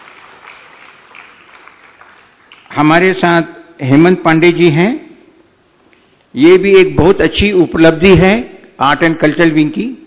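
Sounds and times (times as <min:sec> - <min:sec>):
audience applause welcoming a guest: 0:00.0 - 0:02.8
speech: 0:02.8 - 0:05.0, 0:06.3 - 0:10.0.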